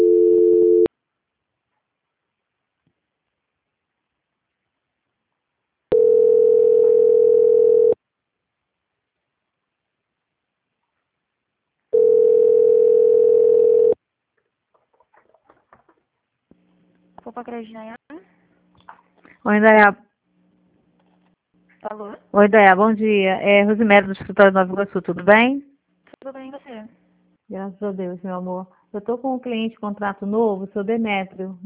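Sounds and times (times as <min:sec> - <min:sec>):
telephone ringing tone while a call is transferred: 0:00.0 - 0:00.9, 0:05.9 - 0:08.0, 0:11.9 - 0:14.0
speech: 0:17.4 - 0:18.0, 0:19.4 - 0:20.0, 0:21.8 - 0:25.7, 0:27.5 - 0:31.6.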